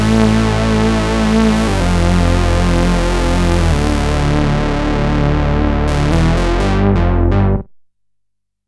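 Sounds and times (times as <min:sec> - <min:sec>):
long modulated lead tone: 0:00.0 - 0:07.7.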